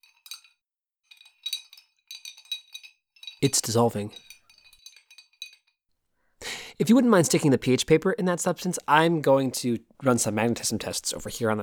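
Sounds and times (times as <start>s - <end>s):
glass stirring rod clinking and scraping in a beaker: 0.0s - 5.8s
speech: 3.4s - 4.3s, 6.8s - 11.6s.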